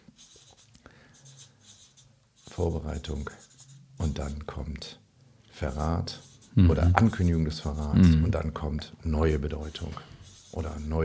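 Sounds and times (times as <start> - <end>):
pen scratching on paper: 0.2 - 4.6, 5.6 - 8.0, 9.3 - 11.0
speech: 2.6 - 5.0, 5.6 - 11.0.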